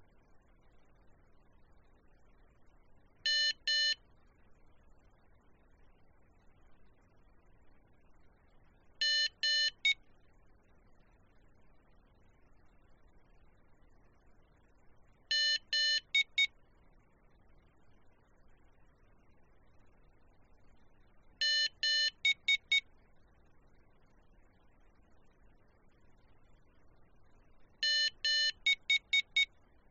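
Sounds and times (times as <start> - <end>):
morse code tones: 3.3 - 4.0, 9.0 - 10.0, 15.3 - 16.5, 21.4 - 22.8, 27.8 - 29.5.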